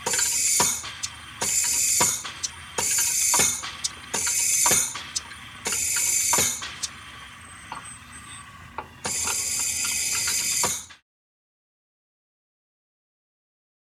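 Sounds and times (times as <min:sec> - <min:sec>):
artificial respiration apparatus: 0:00.0 - 0:11.0.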